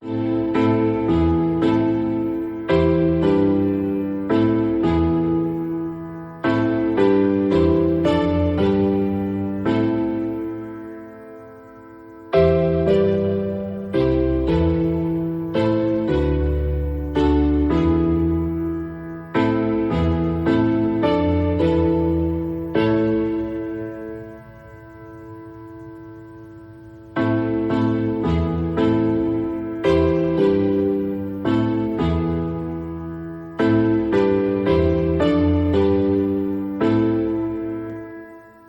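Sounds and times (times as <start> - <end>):
classical Christmas music: 0.0 - 38.6.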